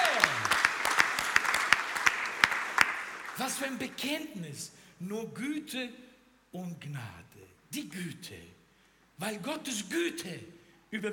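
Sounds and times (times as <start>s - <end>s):
rhythmic applause during a church service: 0.0s - 4.1s
speech: 3.4s - 8.6s, 9.2s - 11.1s.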